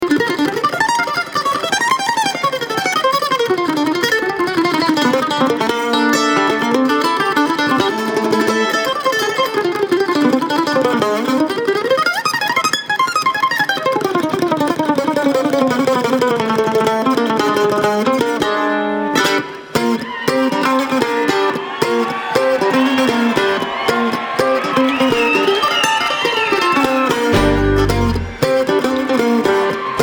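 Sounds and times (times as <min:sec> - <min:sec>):
Kentucky mandolin: 0:00.0 - 0:30.0.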